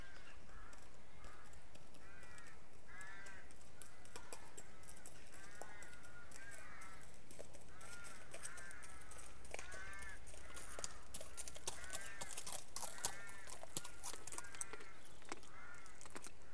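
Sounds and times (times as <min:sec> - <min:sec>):
horse: 0:00.1 - 0:16.4.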